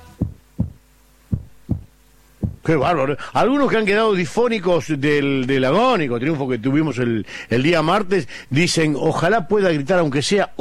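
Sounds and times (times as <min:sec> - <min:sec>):
hearts beating: 0:00.0 - 0:02.8
speech: 0:02.7 - 0:10.5.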